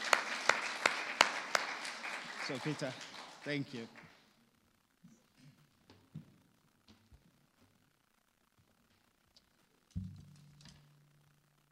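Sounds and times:
audience clapping: 0.0s - 4.3s
speech: 2.5s - 4.1s.

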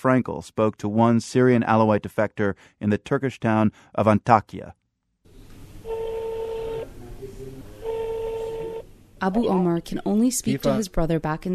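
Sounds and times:
speech: 0.0s - 4.8s, 9.2s - 11.5s
telephone number being dialed: 7.8s - 8.8s.

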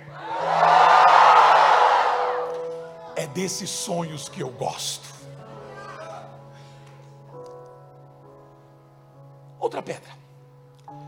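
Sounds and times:
audience shouting together: 0.2s - 2.6s
speech: 3.4s - 5.1s, 9.8s - 10.2s.

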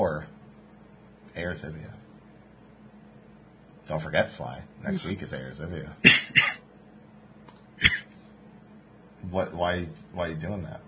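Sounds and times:
speech: 1.4s - 2.0s, 3.9s - 6.6s, 9.2s - 10.8s
person coughing: 6.0s - 6.6s, 7.8s - 8.1s.

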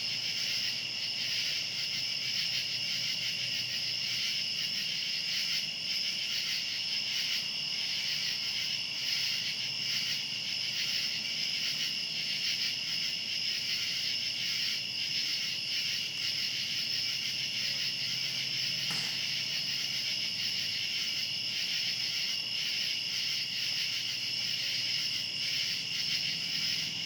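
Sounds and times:
cicadas buzzing: 0.1s - 27.0s
sharp click: 18.9s - 19.4s.

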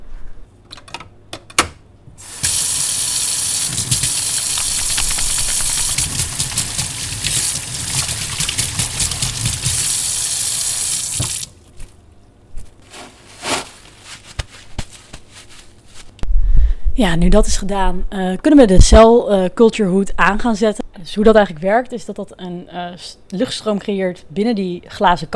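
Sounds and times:
washing hands under running water: 2.2s - 11.6s
speech: 17.0s - 25.3s.

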